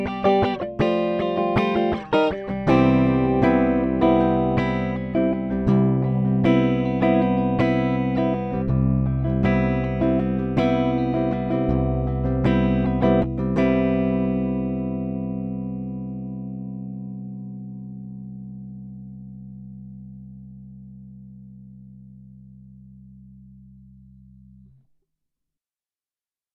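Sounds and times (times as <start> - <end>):
riffy strummed guitar in C: 0.0 - 20.1.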